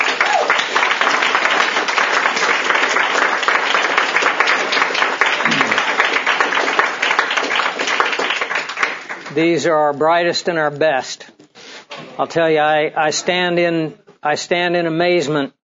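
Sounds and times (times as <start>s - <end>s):
crowd applauding: 0.0s - 9.8s
speech: 9.4s - 11.3s, 12.2s - 15.6s.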